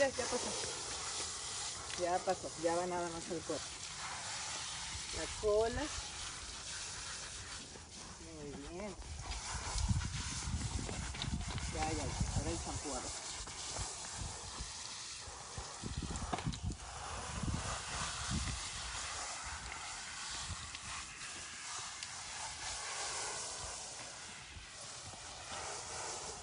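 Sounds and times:
speech: 0.0 - 0.8, 2.0 - 3.8, 5.1 - 6.1, 8.4 - 9.1, 11.8 - 13.2
garden hose spraying water on dog: 0.0 - 26.4.

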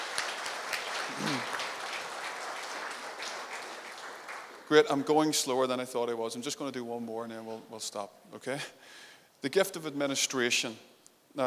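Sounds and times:
audience cheering: 0.0 - 4.5
audience applause: 0.0 - 5.1
speech: 4.7 - 11.4.

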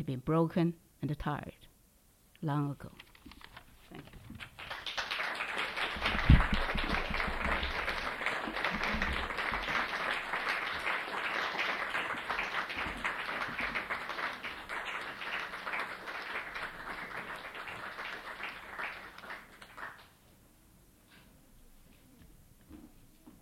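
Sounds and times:
speech: 0.0 - 1.7, 2.4 - 3.1
audience applause: 4.4 - 20.2.

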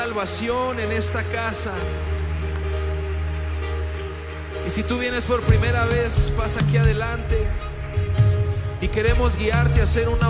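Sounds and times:
speech: 0.0 - 2.2, 4.7 - 7.7, 8.8 - 10.2
audience applauding: 0.0 - 10.2.

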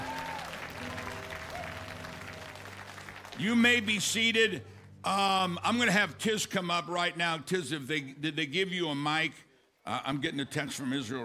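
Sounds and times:
audience clapping: 0.0 - 4.9
speech: 3.4 - 11.2.

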